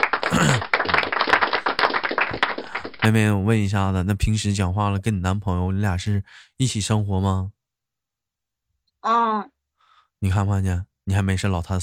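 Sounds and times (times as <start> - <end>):
a few people clapping: 0.0 - 3.7
speech: 3.0 - 7.6, 9.0 - 9.5, 10.2 - 11.8.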